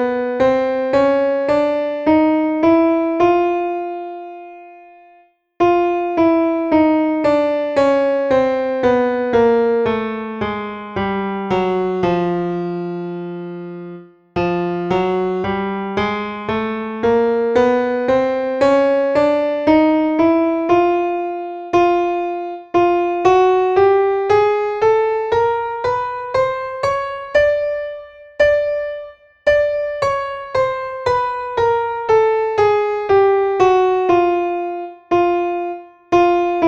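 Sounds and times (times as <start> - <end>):
alto playing chromatic exercise: 0.0 - 36.6.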